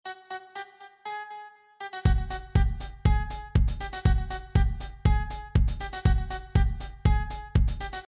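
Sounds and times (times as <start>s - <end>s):
music beat: 1.9s - 8.0s.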